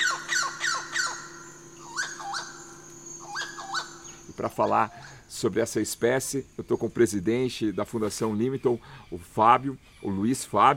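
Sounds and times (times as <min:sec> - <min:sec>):
red-browed amazon parrot squawking: 0:00.0 - 0:05.2
steady low hum: 0:00.0 - 0:07.7
speech: 0:04.4 - 0:10.7.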